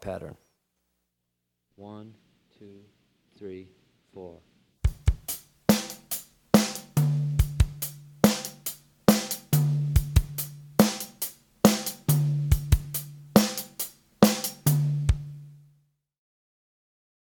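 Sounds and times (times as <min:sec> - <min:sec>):
full drumset playing Afro-Cuban 6-8 feel: 0:04.8 - 0:15.8.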